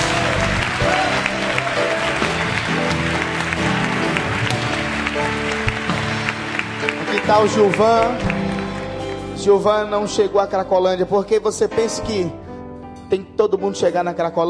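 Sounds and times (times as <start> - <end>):
audience applauding: 0.0 - 9.9
speech: 7.3 - 8.3, 9.4 - 12.4, 13.1 - 14.4.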